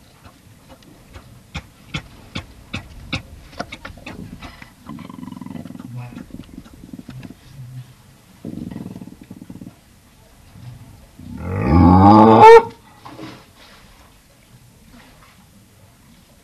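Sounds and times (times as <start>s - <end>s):
Galapagos fur seal grunting and barking: 1.1s - 7.5s, 8.4s - 9.8s, 11.3s - 12.8s.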